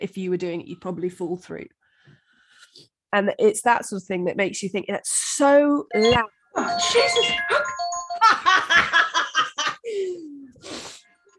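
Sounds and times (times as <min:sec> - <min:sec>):
speech: 0:00.0 - 0:01.8, 0:02.8 - 0:09.1
phone ringing: 0:05.9 - 0:08.5.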